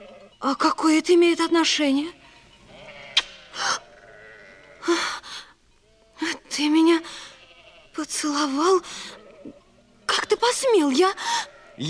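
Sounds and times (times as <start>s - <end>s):
sheep bleating: 0.0s - 0.4s, 1.4s - 5.0s, 5.8s - 10.2s, 11.3s - 11.8s
speech: 0.4s - 2.2s, 8.1s - 9.6s, 10.4s - 11.8s.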